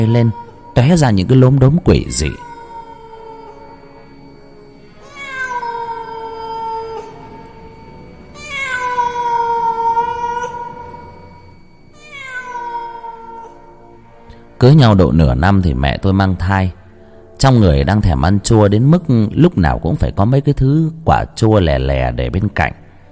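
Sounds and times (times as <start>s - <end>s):
speech: 0.0s - 2.5s, 14.6s - 16.8s, 17.4s - 22.8s
black cat meowing: 2.0s - 3.8s, 5.0s - 13.8s.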